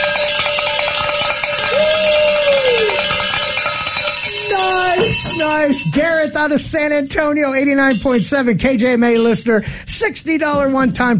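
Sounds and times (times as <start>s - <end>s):
bell ringing for a pledge: 0.0s - 6.5s
speech: 5.4s - 11.1s.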